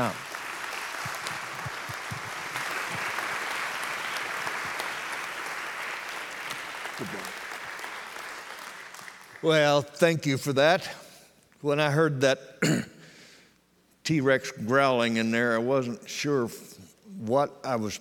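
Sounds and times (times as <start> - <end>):
speech: 0.0 - 0.3, 7.0 - 7.3, 9.4 - 11.0, 11.6 - 13.0, 14.1 - 17.9
audience applauding a welcomed speaker: 0.0 - 9.5.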